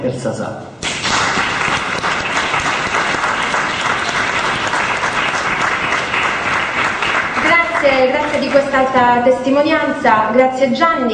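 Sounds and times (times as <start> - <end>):
speech: 0.0 - 0.8, 7.8 - 11.1
audience applause: 0.8 - 9.0.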